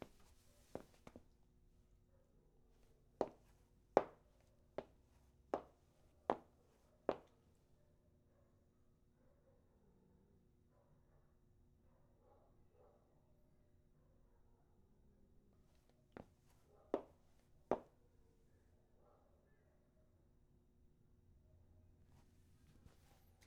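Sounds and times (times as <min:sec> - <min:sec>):
footsteps in a corridor: 0:00.0 - 0:01.2, 0:03.2 - 0:04.2, 0:05.6 - 0:06.5, 0:07.1 - 0:07.3.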